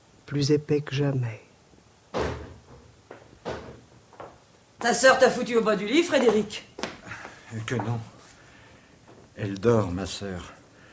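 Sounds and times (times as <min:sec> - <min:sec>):
speech: 0:00.3 - 0:01.5, 0:04.8 - 0:06.8, 0:07.5 - 0:08.2, 0:09.4 - 0:10.6
knocking on a glass door: 0:02.1 - 0:04.4.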